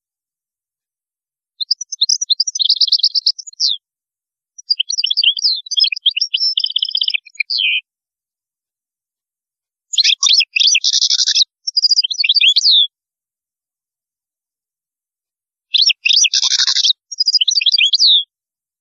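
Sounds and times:
European goldfinch twittering song: 1.6 - 3.8, 4.6 - 7.8, 9.9 - 12.9, 15.7 - 18.3.

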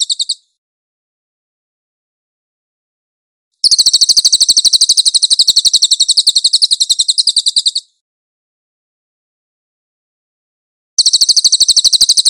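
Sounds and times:
Cililin bird giving a high chattering trill: 0.0 - 0.5, 3.6 - 8.0, 11.0 - 12.2.

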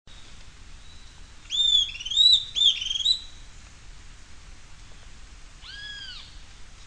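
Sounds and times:
bird song: 0.1 - 3.5, 4.8 - 6.4.

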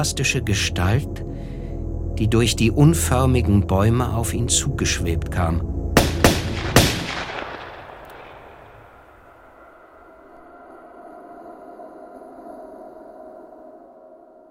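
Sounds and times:
speech: 0.0 - 1.5, 2.2 - 5.8
rumbling echo: 5.6 - 13.8
gunshots: 6.0 - 9.0.

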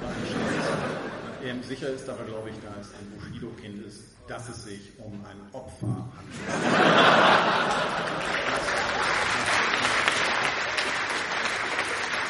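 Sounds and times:
laughter: 0.0 - 1.6, 6.2 - 9.9
speech: 1.5 - 9.5
audience applause at a live satirical comedy show: 7.1 - 12.2.

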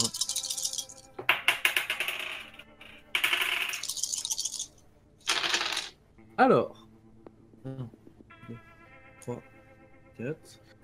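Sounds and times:
six dice rattling in a Degenesis tabletop role-playing game: 0.0 - 2.5, 3.2 - 6.0
speech: 6.4 - 6.8, 7.6 - 8.7, 9.3 - 9.5, 10.2 - 10.6.

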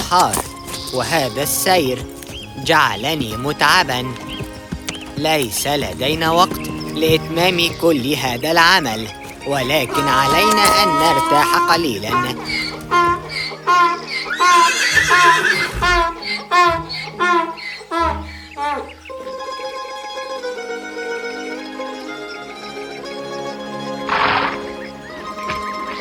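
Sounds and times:
steady musical passage: 0.0 - 25.9
speech: 0.1 - 4.4, 5.2 - 13.1, 13.7 - 18.1
horse neighing in a long wavering whinny: 9.6 - 19.0, 24.1 - 25.9.

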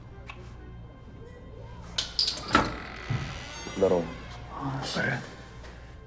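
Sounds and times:
apartment door squeaking open: 2.1 - 4.5
speech: 3.8 - 5.4.

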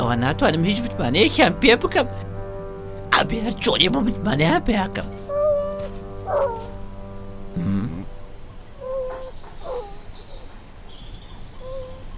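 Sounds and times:
speech: 0.1 - 2.3, 3.2 - 5.2
dog whimpering: 5.3 - 6.7, 8.8 - 10.0
dog barking: 6.3 - 6.6.

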